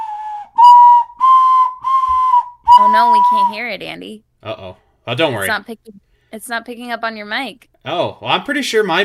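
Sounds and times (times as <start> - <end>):
ocarina playing a melody: 0.0 - 3.6
speech: 2.9 - 9.0.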